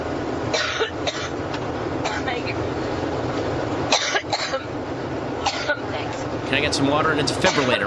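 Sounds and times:
steady rumbling hum: 0:00.0 - 0:07.8
woman coughing repeatedly: 0:00.5 - 0:01.4, 0:02.0 - 0:02.4, 0:03.9 - 0:04.7, 0:05.4 - 0:05.9, 0:07.5 - 0:07.8
speech: 0:06.5 - 0:07.8.

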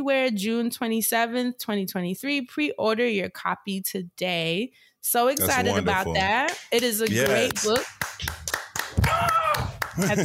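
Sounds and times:
speech: 0:00.0 - 0:08.4, 0:10.0 - 0:10.2
hand claps: 0:06.2 - 0:10.2
laughter: 0:09.8 - 0:10.2.

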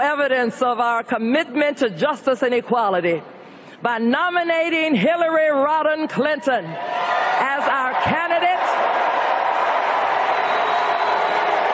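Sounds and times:
speech: 0:00.0 - 0:07.1
crowd booing: 0:06.8 - 0:11.7.

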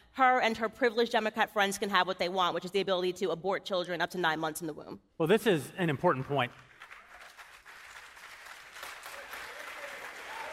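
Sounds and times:
speech: 0:00.2 - 0:06.7
audience applause: 0:06.3 - 0:10.5.

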